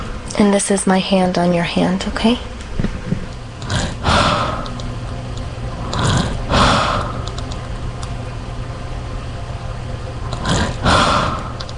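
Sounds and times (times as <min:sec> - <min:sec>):
low mechanical hum: 0:00.0 - 0:11.7
speech: 0:00.4 - 0:02.9
elderly woman's heavy breathing at her bedside: 0:03.6 - 0:04.8, 0:05.8 - 0:07.4, 0:10.4 - 0:11.7.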